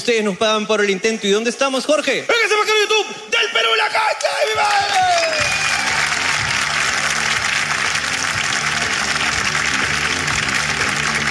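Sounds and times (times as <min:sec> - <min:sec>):
speech: 0:00.0 - 0:05.7
sustained audience applause: 0:04.2 - 0:11.2.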